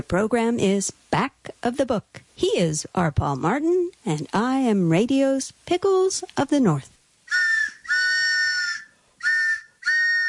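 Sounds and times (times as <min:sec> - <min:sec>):
speech: 0:00.0 - 0:07.0
train whistle blasts: 0:07.3 - 0:10.2.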